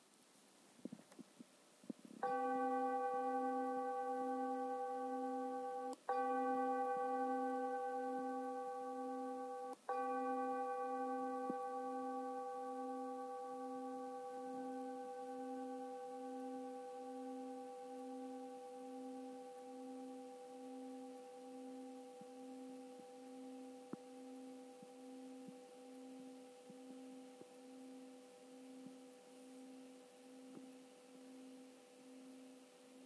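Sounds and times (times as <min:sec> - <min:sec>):
meditation bell vibration: 0:02.2 - 0:33.0.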